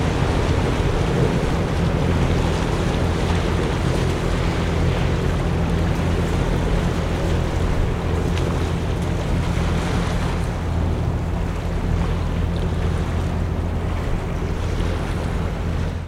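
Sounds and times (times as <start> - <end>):
boat passing in harbour: 0.0 - 16.0
drone of city in background: 0.0 - 16.0
harbour waves lapping onto jetty: 0.0 - 16.0.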